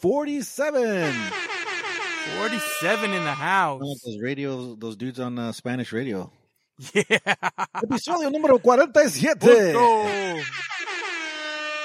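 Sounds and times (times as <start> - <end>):
speech: 0.0 - 1.6, 2.2 - 10.7
rap air horn sound effect: 0.9 - 3.8, 9.8 - 11.8
laughter: 6.8 - 11.0.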